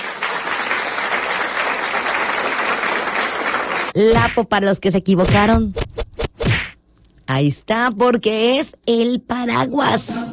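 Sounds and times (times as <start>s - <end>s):
crowd applause: 0.0s - 4.0s
speech: 4.0s - 5.8s, 7.3s - 10.3s.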